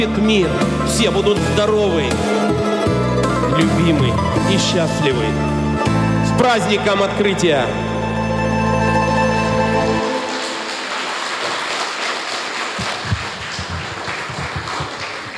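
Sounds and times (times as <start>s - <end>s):
speech: 0.0s - 2.6s, 3.5s - 5.5s, 6.4s - 7.8s
steady humming musical tone: 2.5s - 11.0s
audience applause: 9.7s - 15.3s.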